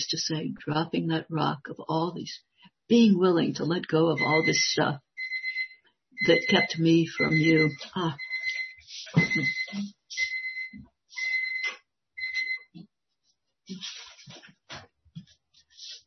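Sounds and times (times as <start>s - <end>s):
speech: 0.0s - 5.1s, 6.2s - 8.3s, 9.1s - 10.3s
alarm going off: 4.2s - 12.7s.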